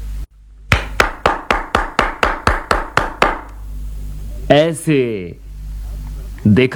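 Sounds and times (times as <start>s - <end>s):
hand clapping: 0.7s - 3.6s
speech: 4.5s - 5.4s, 6.4s - 6.7s.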